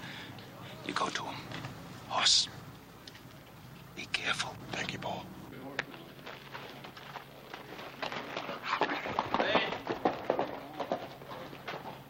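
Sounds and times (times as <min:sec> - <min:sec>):
speech: 0:00.8 - 0:02.6, 0:04.0 - 0:05.4
horse hooves clip-clopping as a rider comes down a street: 0:05.6 - 0:12.0.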